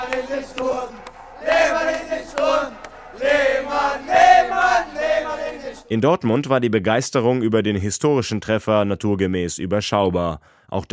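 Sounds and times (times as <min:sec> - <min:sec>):
football fans chanting a player's name: 0:00.0 - 0:05.9
speech: 0:00.0 - 0:10.9.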